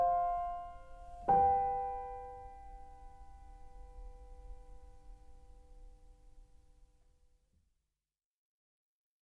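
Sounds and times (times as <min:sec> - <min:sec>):
relaxing music: 0:00.0 - 0:06.8.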